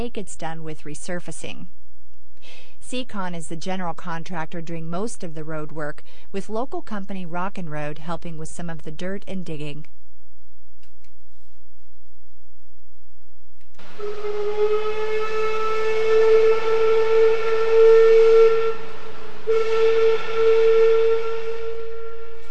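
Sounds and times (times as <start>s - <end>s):
speech: 0.0s - 1.8s, 2.4s - 10.0s, 13.8s - 15.4s
fish processing plant whistle blowing: 14.0s - 22.4s.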